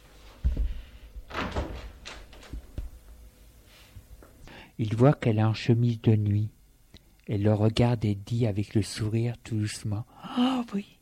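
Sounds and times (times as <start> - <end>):
door opening slightly: 1.3 - 3.0
speech: 4.8 - 6.6, 7.3 - 10.9.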